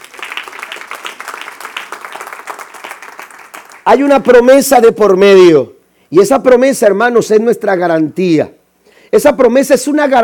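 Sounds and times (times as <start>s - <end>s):
audience applause: 0.0s - 3.9s
speech: 3.9s - 10.2s.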